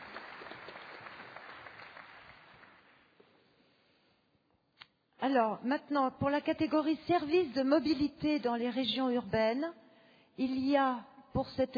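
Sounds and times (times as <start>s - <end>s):
audience applause: 0.0s - 3.0s
speech: 5.2s - 9.8s, 10.4s - 11.7s.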